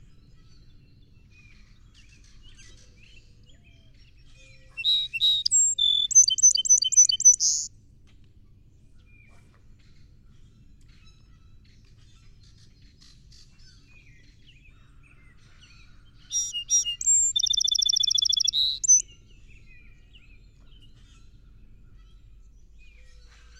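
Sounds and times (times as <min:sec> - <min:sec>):
Song Sparrow song: 0:00.1 - 0:07.7, 0:12.5 - 0:23.5.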